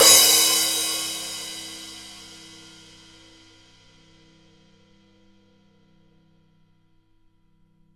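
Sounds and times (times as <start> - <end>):
crash cymbal: 0.0 - 5.0.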